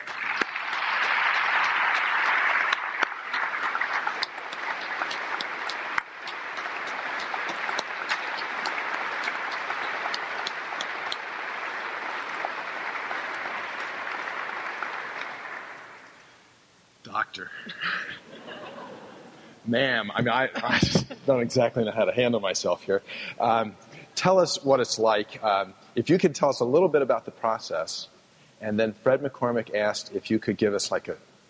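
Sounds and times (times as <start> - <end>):
audience clapping: 0.0 - 16.3
speech: 17.3 - 18.2, 19.7 - 31.3
laughter: 17.7 - 19.5, 20.2 - 21.5.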